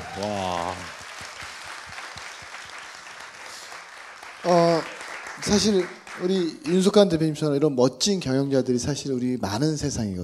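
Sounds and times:
audience applause: 0.0 - 6.9
speech: 0.2 - 1.0, 5.4 - 10.2.

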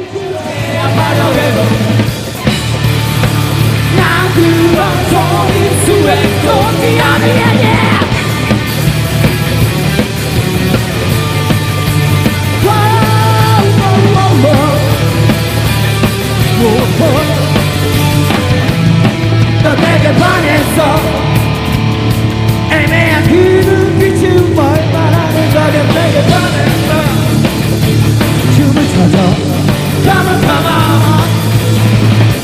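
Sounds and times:
rock band song: 0.0 - 32.4.

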